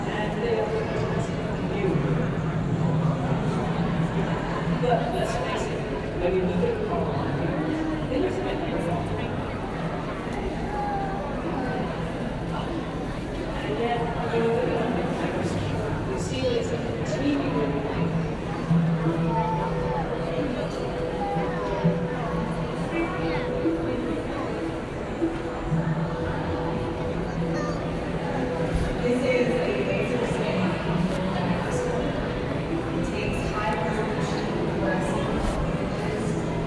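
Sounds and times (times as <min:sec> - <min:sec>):
murmur of many voices in New York City street and subway: 0:00.0 - 0:36.6.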